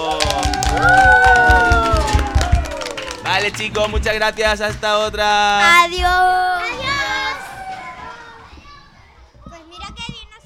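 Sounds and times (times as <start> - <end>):
applause: 0.0 - 4.8
speech: 3.5 - 6.8.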